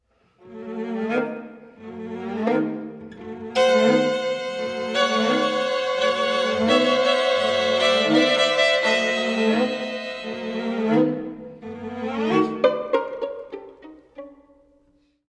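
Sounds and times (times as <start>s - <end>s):
string quartet playing quasi alla marcia: 0.4s - 15.0s.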